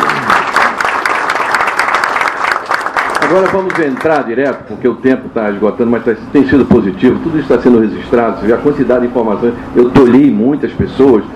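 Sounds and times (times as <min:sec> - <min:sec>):
audience applause: 0:00.0 - 0:04.2
speech: 0:03.3 - 0:11.3.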